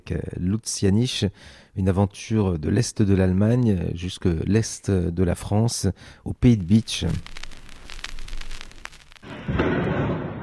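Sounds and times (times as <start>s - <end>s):
speech: 0.1s - 7.4s
dull explosions of night strikes: 7.1s - 10.4s
heavy sustained rumbling blast: 9.2s - 10.4s.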